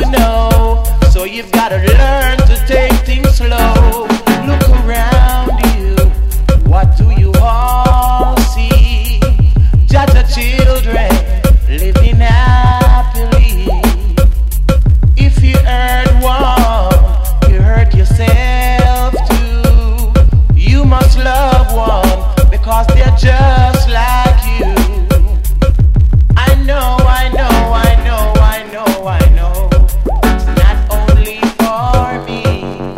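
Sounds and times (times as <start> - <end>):
reggae music: 0.0 - 32.9.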